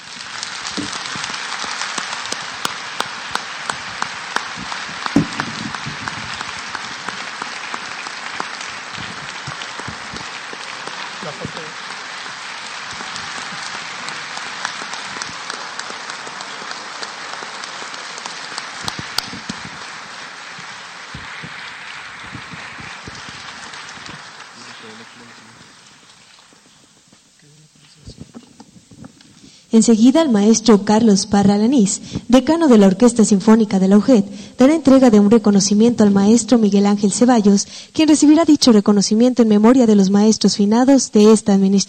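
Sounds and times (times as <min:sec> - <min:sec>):
audience applause: 0:00.0 - 0:27.1
speech: 0:29.8 - 0:41.8.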